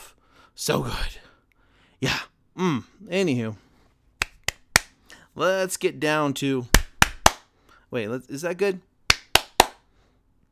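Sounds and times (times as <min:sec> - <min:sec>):
speech: 0:00.6 - 0:01.2, 0:02.0 - 0:03.6, 0:05.4 - 0:06.8, 0:07.9 - 0:08.9
hand claps: 0:04.2 - 0:05.0, 0:06.8 - 0:07.5, 0:09.1 - 0:09.8.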